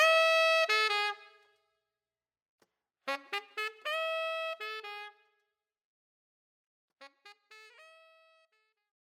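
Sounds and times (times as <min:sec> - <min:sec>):
saxophone solo: 0:00.0 - 0:01.5, 0:03.1 - 0:05.3, 0:07.0 - 0:08.8.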